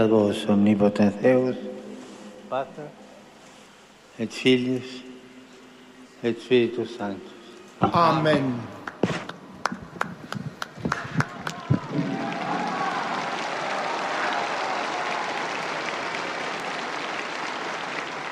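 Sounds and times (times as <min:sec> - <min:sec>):
speech: 0:00.0 - 0:01.7, 0:02.5 - 0:03.0, 0:04.2 - 0:05.1, 0:06.2 - 0:08.8
pilgrims applauding Pope Francis's blessing: 0:08.6 - 0:18.3.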